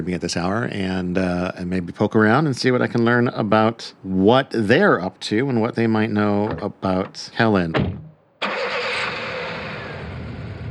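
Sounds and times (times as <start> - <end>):
speech: 0.0 - 8.0
1937 Ford Coupe engine starting: 6.2 - 10.6.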